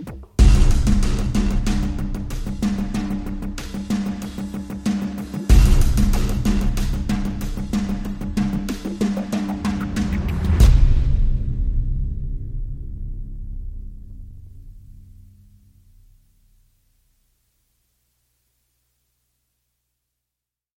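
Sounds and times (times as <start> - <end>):
drums: 0.0 - 15.4.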